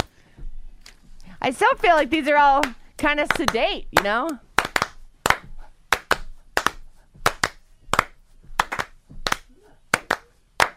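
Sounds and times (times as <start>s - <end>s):
speech: 1.4s - 4.4s
clapping along to music: 2.6s - 10.7s.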